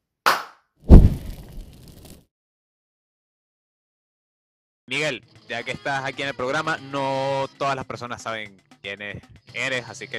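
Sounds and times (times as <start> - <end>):
hand clap or finger snap: 0.3 - 0.6
heavy bass-rich thump: 0.9 - 1.7
speech: 4.9 - 10.1.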